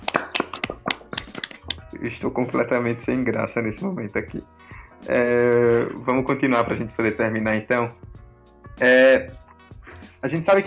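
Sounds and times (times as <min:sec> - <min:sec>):
hands clapping: 0:00.0 - 0:02.0
speech: 0:02.0 - 0:08.1, 0:08.8 - 0:09.4, 0:10.2 - 0:10.6.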